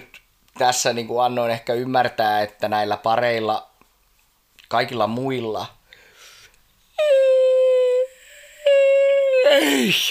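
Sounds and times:
speech: 0:00.6 - 0:03.7, 0:04.7 - 0:05.8, 0:09.5 - 0:10.0
person giving a big yawn: 0:07.0 - 0:10.0.

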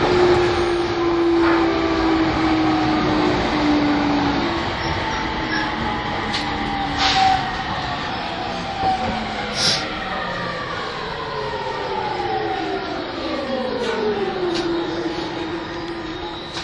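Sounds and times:
E231 series Yamanote Line train on the outer loop rumbling: 0:00.0 - 0:16.6.

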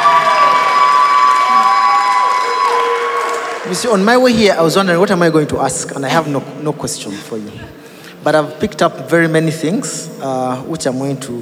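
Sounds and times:
audience clapping and cheering: 0:00.0 - 0:04.6
speech: 0:03.7 - 0:11.4.

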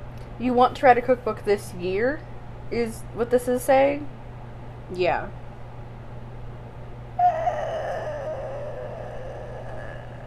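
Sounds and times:
speech: 0:00.4 - 0:04.2, 0:04.9 - 0:05.4
person screeching: 0:07.2 - 0:10.2.

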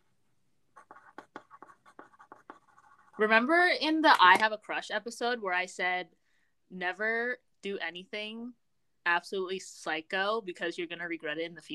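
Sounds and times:
pen or pencil writing on paper: 0:00.7 - 0:03.4
speech: 0:03.2 - 0:11.7.

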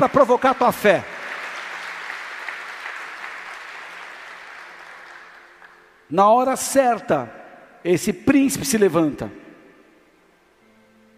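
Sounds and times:
speech: 0:00.0 - 0:01.1, 0:06.1 - 0:09.4
audience applauding: 0:00.0 - 0:05.9.

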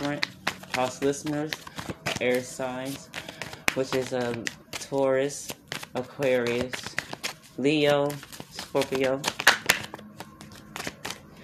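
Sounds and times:
tarot cards being shuffled and drawn during a reading: 0:00.0 - 0:11.3
speech: 0:00.1 - 0:06.8, 0:07.6 - 0:09.4.

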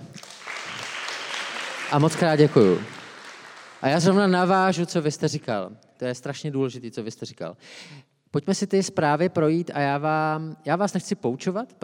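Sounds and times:
crowd applause: 0:00.0 - 0:04.3
speech: 0:01.9 - 0:03.0, 0:03.8 - 0:11.8.

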